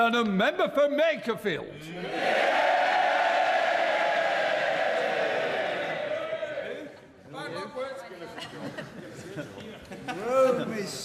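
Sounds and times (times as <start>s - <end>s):
speech: 0.0s - 2.7s
Labour Members of Parliament cheering as a Labour MP is sworn in: 2.0s - 7.1s
laughter: 8.1s - 10.8s.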